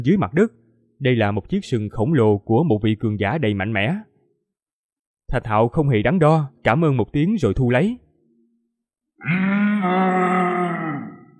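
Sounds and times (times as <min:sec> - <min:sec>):
speech: 0:00.0 - 0:04.1, 0:05.3 - 0:08.0, 0:09.2 - 0:10.5
giant buffalo bellowing: 0:09.2 - 0:11.3.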